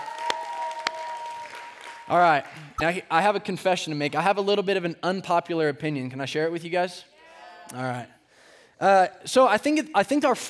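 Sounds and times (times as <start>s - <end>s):
audience applause: 0.0s - 2.8s
speech: 2.1s - 7.1s, 7.7s - 8.2s, 8.8s - 10.4s.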